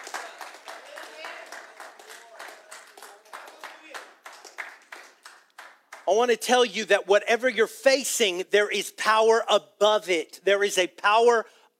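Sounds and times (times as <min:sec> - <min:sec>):
audience clapping hands: 0:00.0 - 0:06.4
speech: 0:06.1 - 0:11.7.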